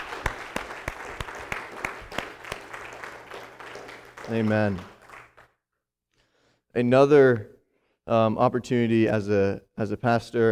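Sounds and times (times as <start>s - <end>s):
audience clapping: 0.0s - 5.6s
speech: 4.3s - 4.9s, 6.8s - 7.5s, 8.1s - 10.4s.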